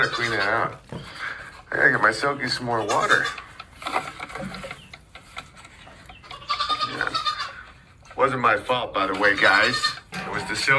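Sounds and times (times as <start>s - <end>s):
goats bleating: 0.0s - 1.1s, 2.7s - 3.8s, 6.2s - 7.8s, 9.1s - 10.5s
speech: 0.0s - 4.1s, 8.2s - 10.7s.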